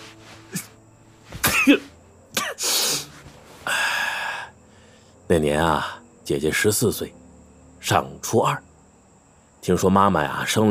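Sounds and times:
speech: 1.6s - 1.9s, 5.3s - 7.2s, 7.8s - 8.7s, 9.6s - 10.6s
person sniffing a flower: 2.5s - 4.0s.

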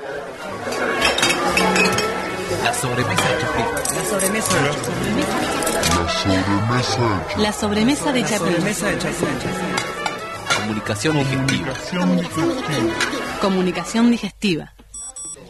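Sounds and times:
glasses and bottles clinking: 0.9s - 2.4s, 3.0s - 6.1s, 9.7s - 13.2s
speech: 2.8s - 9.7s, 10.7s - 14.8s.

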